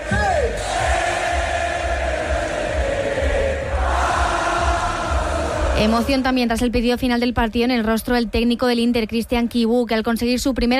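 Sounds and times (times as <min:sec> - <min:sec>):
thousands of football fans cheering and chanting in celebration: 0:00.0 - 0:06.2
speech: 0:05.8 - 0:10.7.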